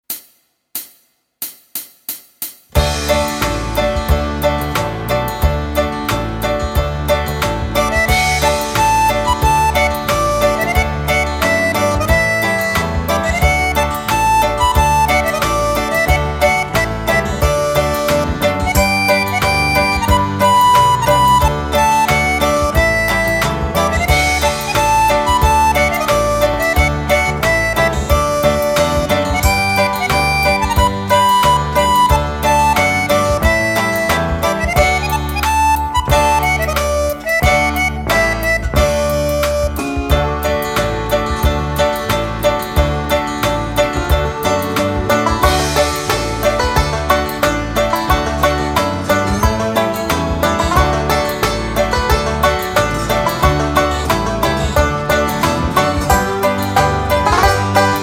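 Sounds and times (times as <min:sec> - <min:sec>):
ukulele folk tune: 0:02.7 - 0:58.0.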